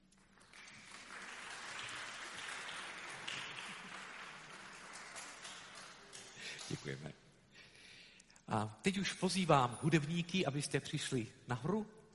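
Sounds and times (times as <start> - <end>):
audience applauding: 0.0 - 7.0
speech: 6.8 - 7.3, 8.5 - 12.0.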